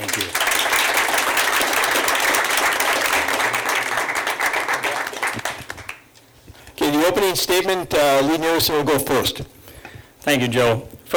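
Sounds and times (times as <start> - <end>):
audience applause welcoming candidates: 0.0 - 6.1
speech: 7.2 - 9.6, 10.2 - 11.1.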